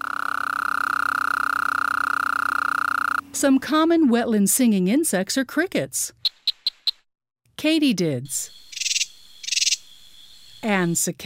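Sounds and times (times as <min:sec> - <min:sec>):
Gulf Coast toad calling trill: 0:00.0 - 0:03.2, 0:06.2 - 0:07.0, 0:08.5 - 0:10.9
speech: 0:03.4 - 0:06.2, 0:07.6 - 0:08.6, 0:10.6 - 0:11.2.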